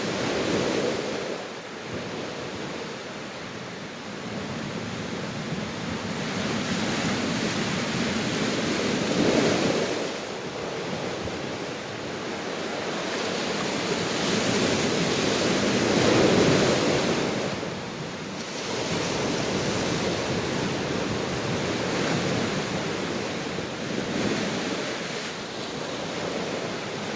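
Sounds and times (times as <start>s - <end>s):
ocean waves: 0.0s - 27.1s.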